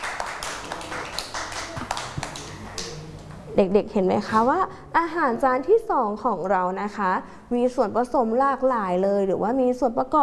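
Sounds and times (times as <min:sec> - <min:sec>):
applause: 0:00.0 - 0:03.0
speech: 0:03.6 - 0:10.2.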